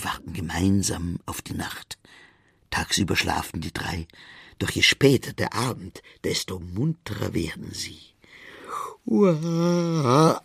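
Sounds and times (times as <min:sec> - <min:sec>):
speech: 0:00.0 - 0:08.1, 0:09.0 - 0:10.4
narrator imitating the yawn of a long-eared bat: 0:08.7 - 0:10.4.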